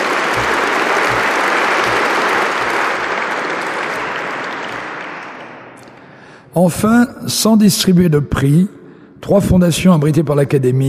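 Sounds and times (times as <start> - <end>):
audience applause: 0.0 - 5.8
speech: 6.6 - 10.8.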